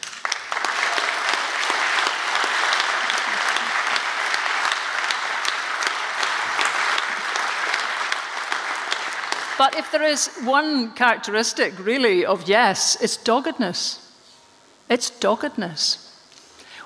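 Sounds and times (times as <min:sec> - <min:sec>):
large audience applause: 0:00.0 - 0:10.2
speech: 0:09.6 - 0:14.0, 0:14.9 - 0:16.0.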